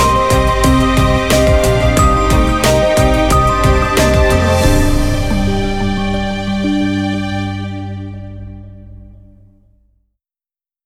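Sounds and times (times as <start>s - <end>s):
dramatic classical hip hop: 0.0s - 8.4s.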